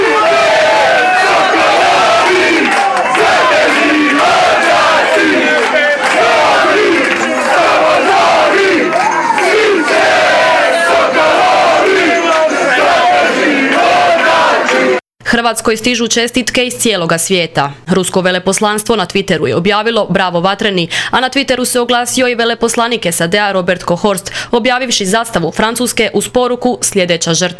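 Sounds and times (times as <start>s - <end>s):
football fans celebrating Croatia's 2-1 winning goal against England: 0.0s - 15.0s
speech: 15.4s - 27.5s.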